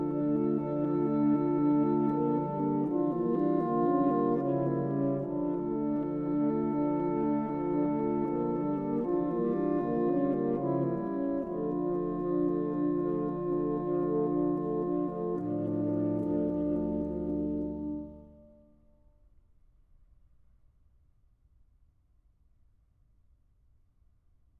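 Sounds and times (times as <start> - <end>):
saxophone quartet playing: 0.0 - 18.6.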